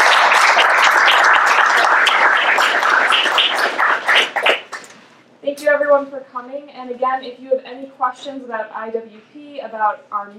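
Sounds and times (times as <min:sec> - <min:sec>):
audience applause: 0:00.0 - 0:04.9
speech: 0:06.0 - 0:10.3.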